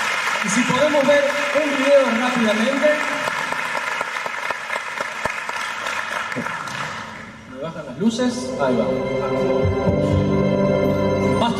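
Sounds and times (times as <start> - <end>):
audience applause: 0.0 - 7.3
speech: 0.4 - 3.2, 7.7 - 10.8.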